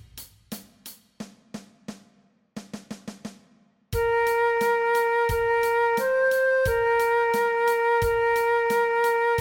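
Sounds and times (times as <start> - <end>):
transverse flute playing along with a play-along track: 4.0 - 9.3.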